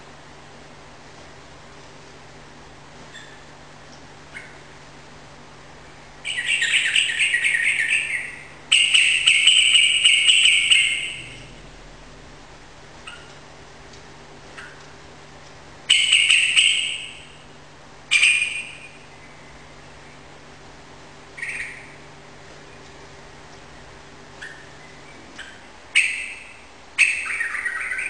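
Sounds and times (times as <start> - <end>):
yellow-vented bulbul singing rapid continuous chattering song indoors in a room: 6.2 - 11.6, 15.8 - 20.3, 21.3 - 23.0, 24.3 - 28.0.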